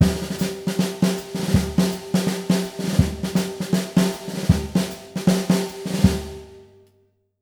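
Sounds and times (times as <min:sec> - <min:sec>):
jazzy breakbeat: 0:00.0 - 0:05.2.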